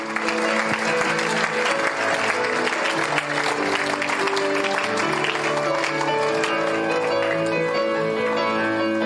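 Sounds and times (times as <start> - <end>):
audience clapping: 0.0 - 8.1.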